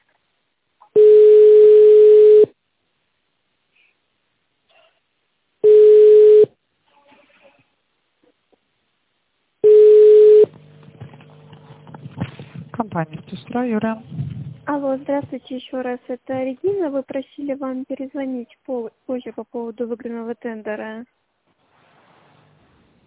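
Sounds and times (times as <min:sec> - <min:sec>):
telephone ringback tone while waiting on hold: 0:01.0 - 0:02.5, 0:05.6 - 0:06.5, 0:09.6 - 0:10.5
speech: 0:13.0 - 0:21.2.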